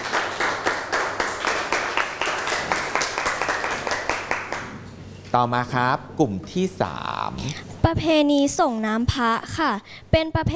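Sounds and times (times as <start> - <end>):
classroom group applauding: 0.0 - 4.8
speech: 5.3 - 10.5.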